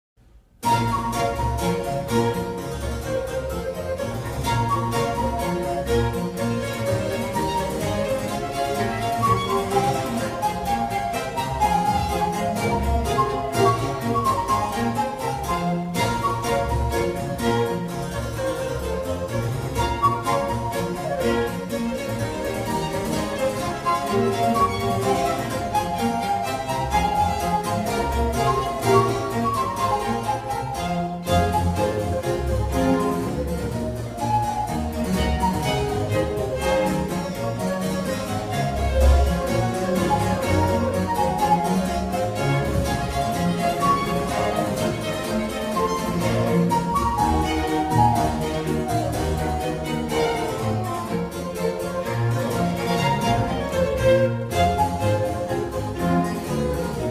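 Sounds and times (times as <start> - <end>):
transverse flute: 0.6 - 57.0.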